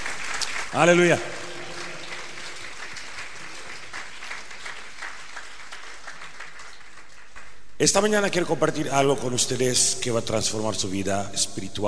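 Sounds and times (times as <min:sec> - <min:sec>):
audience applause: 0:00.0 - 0:07.7
speech: 0:00.7 - 0:01.4, 0:07.8 - 0:11.8.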